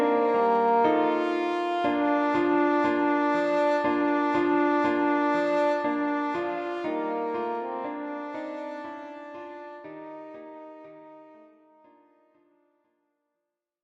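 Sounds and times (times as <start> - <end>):
French horn melody in F: 0.0 - 11.7.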